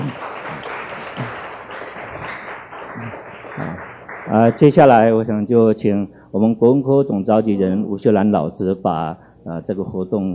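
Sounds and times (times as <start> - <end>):
audience applause at a Chinese-language department school event: 0.0 - 4.7
speech: 4.3 - 10.3.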